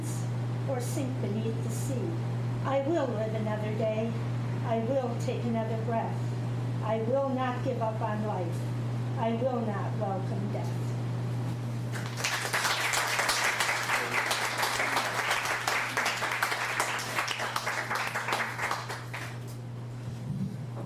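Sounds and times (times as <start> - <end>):
low constant hum: 0.0 - 20.8
speech: 0.7 - 10.8
audience applauding a performer at a reading event: 11.9 - 19.4.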